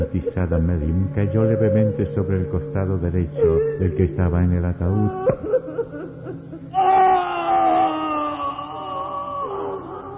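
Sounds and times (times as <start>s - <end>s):
speech: 0.0s - 5.5s
terrified human shriek echoing in castle: 6.7s - 10.1s.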